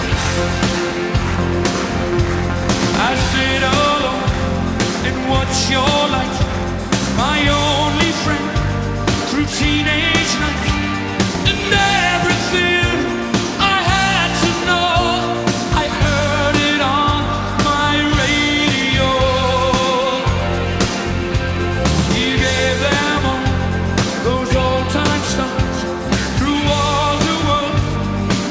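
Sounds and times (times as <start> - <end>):
rock music: 0.0 - 28.4.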